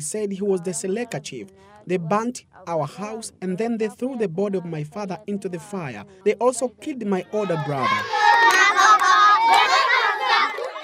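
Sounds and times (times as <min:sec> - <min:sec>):
speech: 0:00.0 - 0:08.2
children singing together at a site for displaced people: 0:07.3 - 0:10.8.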